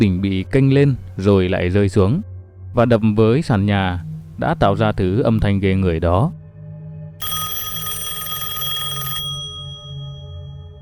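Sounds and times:
speech: 0.0 - 6.4
telephone ringing: 7.2 - 10.7.

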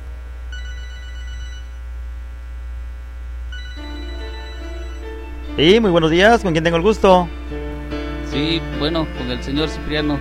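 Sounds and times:
steady low hum: 0.0 - 8.4
telephone ringing in a radio studio: 0.5 - 1.8, 3.5 - 5.2
speech: 5.6 - 7.4, 8.4 - 10.1.

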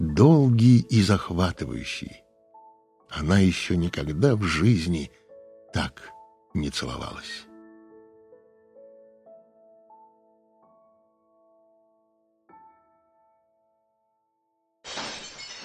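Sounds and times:
speech: 0.2 - 2.2, 3.1 - 7.5
crockery breaking: 14.9 - 15.6.

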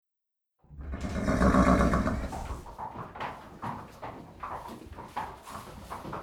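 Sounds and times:
horse nickering: 0.7 - 2.7.

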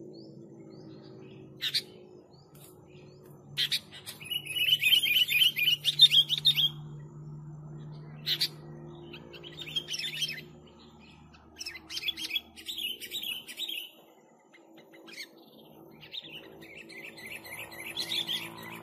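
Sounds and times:
sooty-headed bulbul chattering song: 3.5 - 7.0, 8.2 - 18.8.

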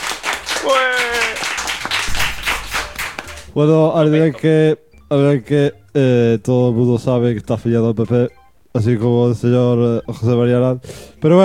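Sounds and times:
applause: 0.0 - 3.5
speech: 0.6 - 1.4, 3.6 - 11.4.

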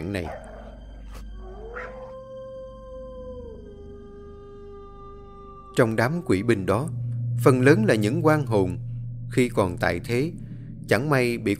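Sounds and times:
pack of dogs howling: 0.0 - 6.9
speech: 0.1 - 0.5, 5.8 - 11.5.

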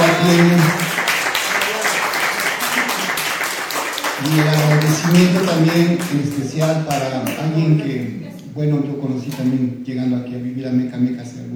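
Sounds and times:
applause: 0.0 - 7.4
speech: 0.2 - 0.8, 4.3 - 11.5.

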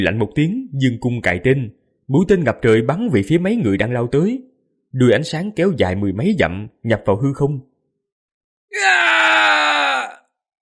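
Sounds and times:
speech: 0.0 - 7.7
man pierced through the shoulder by an arrow screaming in pain: 8.7 - 10.3.

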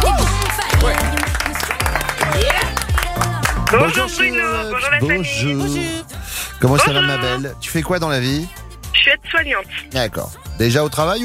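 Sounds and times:
game show audience clapping to welcome a caller: 0.0 - 5.0
speech: 3.7 - 11.2.

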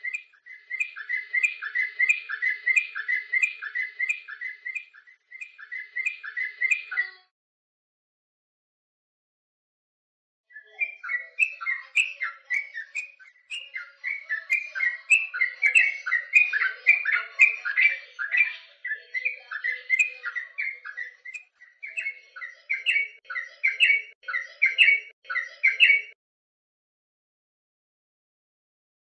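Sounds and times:
bird song of whistled and warbled notes: 0.0 - 7.1, 10.5 - 26.2.

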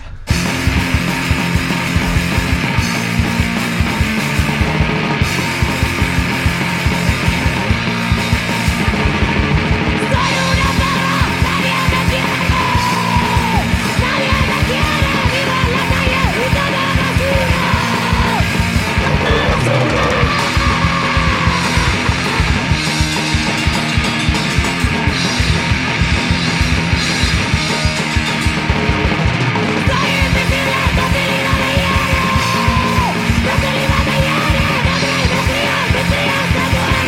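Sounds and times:
fast pounding drums: 0.0 - 37.0
loud dense distorted guitars: 0.0 - 37.0
woman screaming vocals in a hardcore song: 10.1 - 18.5, 19.2 - 22.0, 29.9 - 33.3.

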